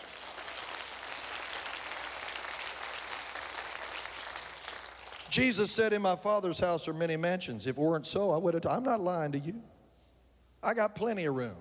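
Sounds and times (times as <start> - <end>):
audience clapping: 0.0 - 5.6
speech: 5.3 - 9.7, 10.6 - 11.5.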